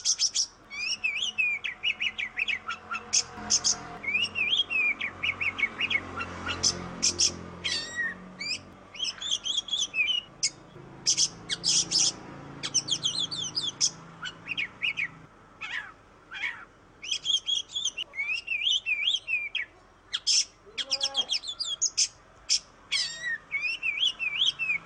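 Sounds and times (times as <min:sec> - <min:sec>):
Oriental magpie-robin singing whistles and chirps: 0:00.0 - 0:24.8.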